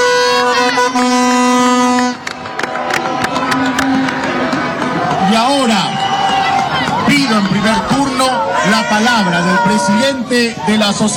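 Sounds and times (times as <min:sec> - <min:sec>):
crowd applause: 0:00.3 - 0:07.9
speech: 0:08.7 - 0:11.1.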